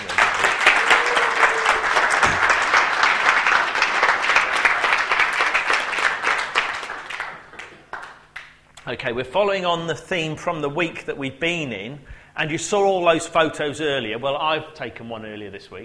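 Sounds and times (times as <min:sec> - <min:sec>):
audience clapping: 0:00.0 - 0:08.6
speech: 0:08.9 - 0:15.8.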